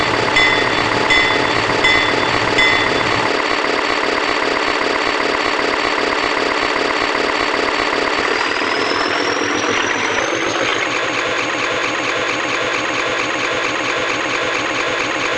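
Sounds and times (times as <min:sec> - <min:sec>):
ALCO C425 diesel locomotive in the US: 0:00.0 - 0:15.3.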